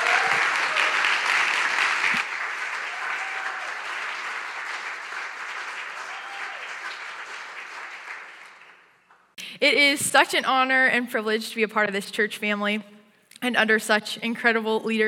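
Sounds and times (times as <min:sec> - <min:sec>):
crowd cheering and shouting: 0:00.0 - 0:01.1, 0:02.8 - 0:03.9, 0:05.9 - 0:06.8
crowd applause: 0:00.0 - 0:09.3
speech: 0:09.6 - 0:15.0.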